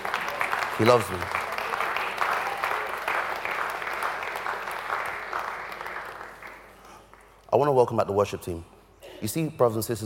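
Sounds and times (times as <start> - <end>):
audience clapping: 0.0 - 7.7
speech: 0.8 - 1.4, 7.5 - 10.0.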